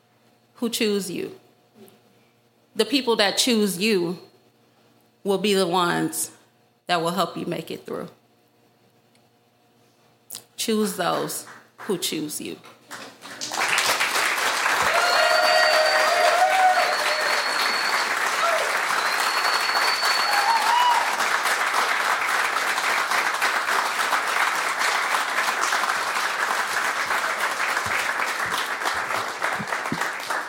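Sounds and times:
speech: 0.6s - 1.4s, 2.8s - 4.3s, 5.2s - 8.2s, 10.6s - 13.1s
audience clapping: 11.4s - 12.0s, 12.9s - 30.4s.

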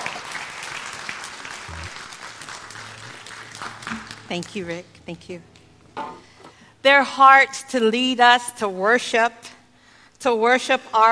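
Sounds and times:
church audience applauding: 0.0s - 4.7s
speech: 4.3s - 5.5s, 6.8s - 9.5s, 10.2s - 11.1s.

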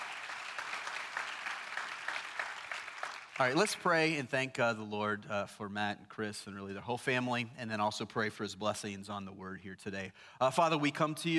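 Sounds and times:
group clapping: 0.0s - 4.0s
speech: 3.4s - 11.3s.

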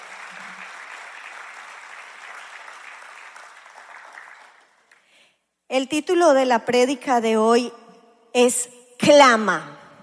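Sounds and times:
audience applauding: 0.0s - 5.1s
speech: 5.7s - 7.8s, 8.4s - 9.7s.

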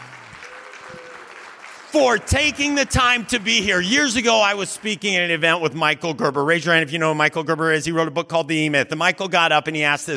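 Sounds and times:
audience applause: 0.0s - 5.4s
speech: 1.9s - 10.1s.

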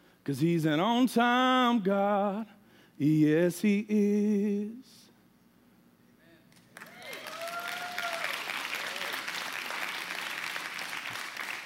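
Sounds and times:
speech: 0.2s - 5.0s
audience clapping hands: 6.5s - 11.6s.

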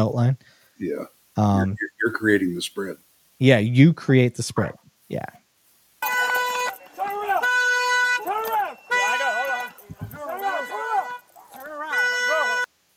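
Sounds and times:
speech: 0.0s - 5.4s
car alarm going off: 6.0s - 12.7s.

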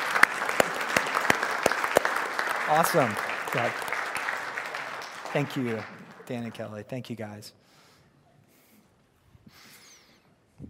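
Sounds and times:
audience applauding: 0.0s - 6.9s
speech: 2.7s - 3.9s, 5.3s - 7.6s.

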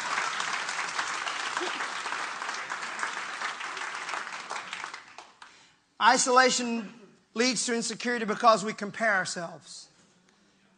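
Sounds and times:
audience clapping: 0.0s - 5.7s
speech: 6.0s - 9.9s.

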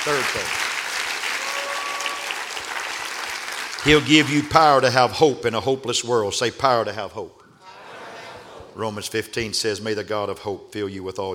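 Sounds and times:
speech: 0.0s - 0.7s, 3.8s - 7.4s, 8.8s - 11.3s
audience clapping hands: 0.0s - 5.0s.

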